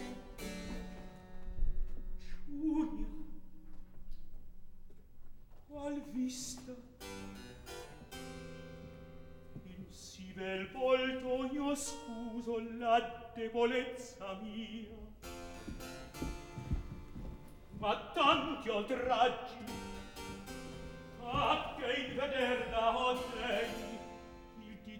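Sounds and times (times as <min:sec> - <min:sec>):
opera recitative: 0:00.0 - 0:00.8, 0:02.2 - 0:03.6, 0:05.7 - 0:07.3, 0:09.5 - 0:15.8, 0:17.7 - 0:24.9.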